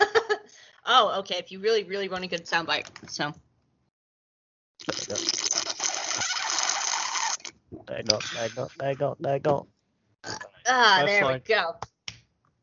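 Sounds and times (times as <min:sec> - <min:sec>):
speech: 0:00.9 - 0:03.4, 0:04.8 - 0:05.6, 0:07.7 - 0:11.9
person drinking water: 0:04.8 - 0:06.8.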